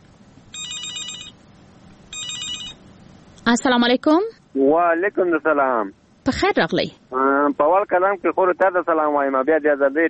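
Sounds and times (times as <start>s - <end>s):
steady hiss: 0.0s - 10.0s
telephone ringing with a listener's call: 0.5s - 1.4s, 2.1s - 2.8s
speech: 3.5s - 10.0s.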